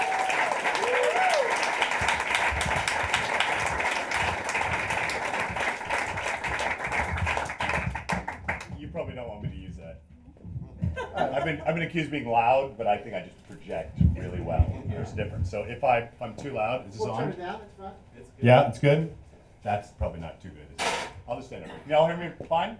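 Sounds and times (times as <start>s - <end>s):
audience whooping: 0.0s - 2.1s
audience applause: 0.0s - 8.8s
laughter: 10.6s - 11.9s
speech: 11.5s - 20.6s, 21.4s - 22.7s.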